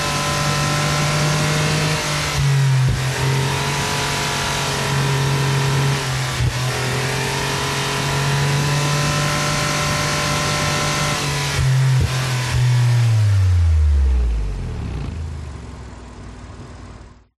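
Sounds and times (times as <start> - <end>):
sports car engine at high RPM running unstable: 0.0 - 17.2.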